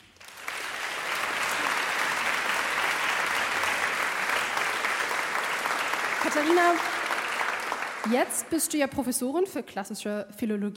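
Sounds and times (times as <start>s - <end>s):
audience applause: 0.0s - 8.5s
speech: 6.2s - 6.9s, 8.0s - 10.7s.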